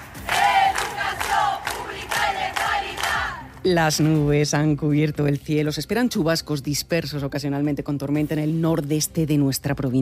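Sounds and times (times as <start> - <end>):
street protest crowd chanting: 0.0 - 3.5
speech: 3.6 - 10.0.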